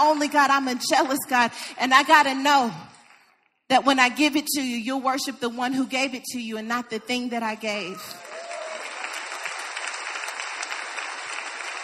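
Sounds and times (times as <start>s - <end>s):
speech: 0.0s - 2.9s, 3.7s - 8.2s
crowd applauding: 8.2s - 11.8s.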